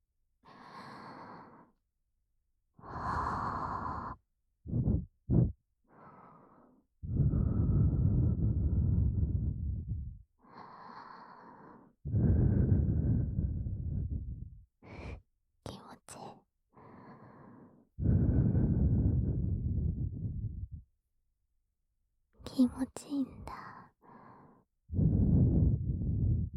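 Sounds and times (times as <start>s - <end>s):
soft blowing of breath into ear: 2.8s - 15.2s, 16.8s - 20.9s, 23.3s - 26.5s
speech: 22.6s - 23.6s.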